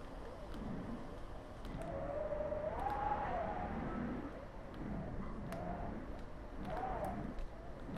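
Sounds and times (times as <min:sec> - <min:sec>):
wind forcing a door open: 0:00.0 - 0:07.9.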